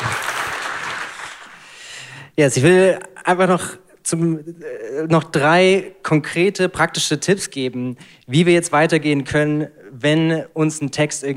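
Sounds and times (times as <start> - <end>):
audience applause: 0.0 - 1.7
speech: 2.4 - 11.3.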